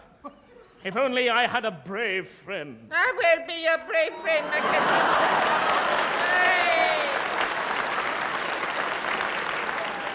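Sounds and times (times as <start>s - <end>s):
laughter: 0.0s - 1.3s, 3.2s - 7.7s
speech: 0.2s - 6.5s
audience applause: 3.9s - 10.1s.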